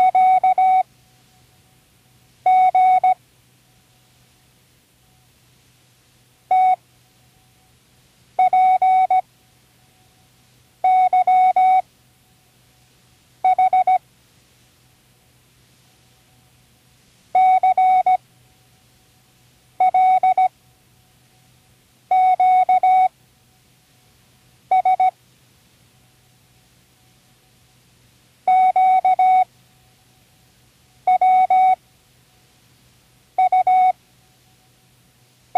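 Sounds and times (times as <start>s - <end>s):
morse code signal: 0.0s - 0.9s, 2.5s - 3.2s, 6.5s - 6.8s, 8.4s - 9.2s, 10.8s - 11.8s, 13.4s - 14.0s, 17.4s - 18.2s, 19.8s - 20.5s, 22.1s - 23.1s, 24.7s - 25.2s, 28.5s - 29.5s, 31.1s - 31.8s, 33.4s - 34.0s.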